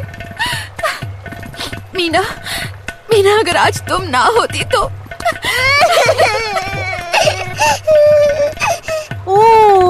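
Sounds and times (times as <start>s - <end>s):
speech: 2.0s - 2.5s, 3.2s - 6.7s
infant with a fever and an aching ear crying: 5.4s - 9.2s.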